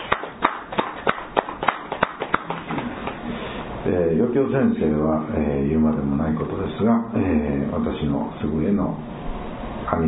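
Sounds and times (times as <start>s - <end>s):
audience applause for birthday celebration: 0.0s - 3.2s
speech: 3.9s - 9.2s.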